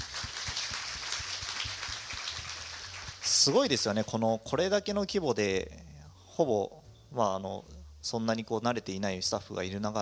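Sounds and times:
people clapping: 0.0s - 3.8s
speech: 3.4s - 10.0s.

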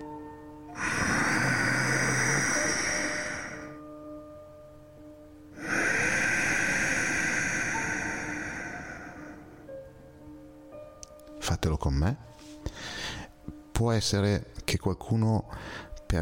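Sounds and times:
breath sound during inhalation and exhalation: 0.7s - 3.9s, 5.5s - 9.9s, 12.4s - 13.4s, 15.5s - 16.0s
speech: 11.6s - 12.4s, 13.8s - 16.2s.

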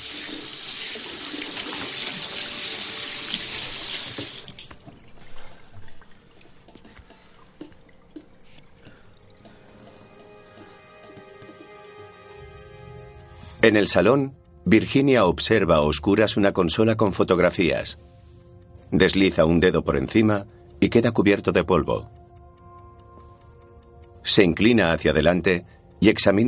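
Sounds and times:
water running from kitchen tap: 0.0s - 6.8s
speech: 13.6s - 18.1s, 18.9s - 22.2s, 24.3s - 26.4s.

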